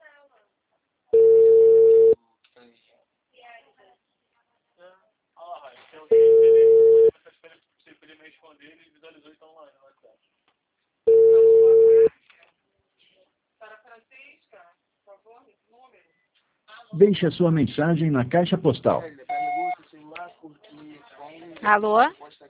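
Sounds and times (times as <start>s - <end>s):
telephone ringback tone while placing a call: 1.2s - 2.2s, 6.1s - 7.1s, 11.1s - 12.1s, 19.3s - 19.8s
speech: 16.9s - 19.2s, 21.7s - 22.2s.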